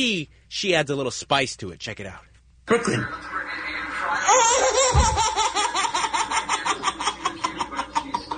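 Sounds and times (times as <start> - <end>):
speech: 0.0 - 3.4, 4.4 - 5.8
baby laughing hysterically: 4.2 - 8.3.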